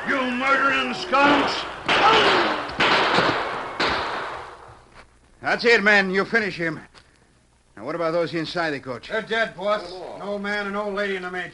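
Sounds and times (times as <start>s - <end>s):
gunshots: 0.0s - 4.8s
speech: 0.4s - 2.7s, 5.4s - 6.9s, 7.8s - 11.5s.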